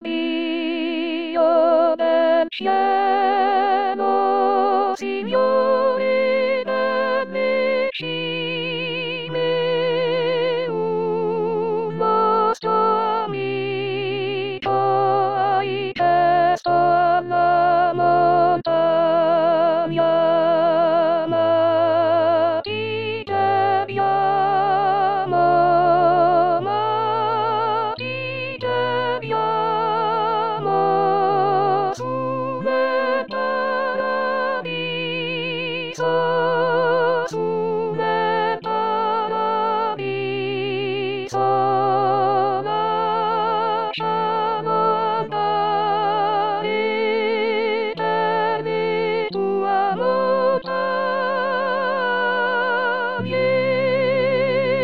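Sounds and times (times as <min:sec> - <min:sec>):
voice: 0:00.0 - 0:54.8.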